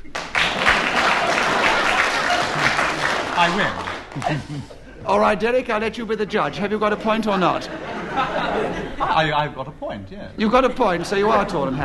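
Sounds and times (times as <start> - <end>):
audience clapping: 0.0 - 4.8
laughter: 0.4 - 5.4, 6.1 - 9.4, 10.6 - 11.8
speech: 3.4 - 11.8.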